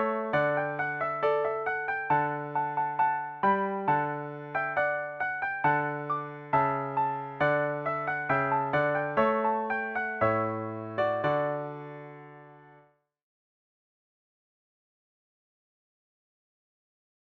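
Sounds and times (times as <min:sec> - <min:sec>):
piano: 0:00.0 - 0:13.1.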